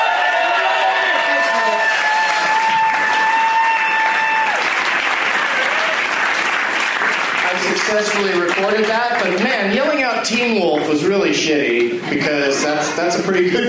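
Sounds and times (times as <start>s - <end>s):
whoops and cheers: 0.0s - 6.2s
crowd clapping: 0.0s - 11.2s
speech: 7.9s - 13.6s.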